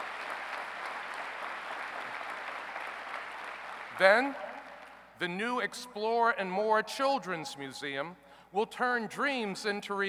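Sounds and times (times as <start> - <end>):
applause: 0.0 - 5.2
speech: 4.0 - 4.4, 5.2 - 10.0.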